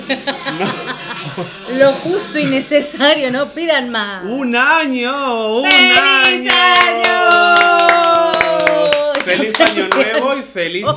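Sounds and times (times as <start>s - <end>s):
laughter: 0.0s - 2.6s, 8.0s - 10.9s
speech: 0.1s - 7.9s, 9.3s - 10.9s
rhythmic hand clapping: 5.6s - 10.2s.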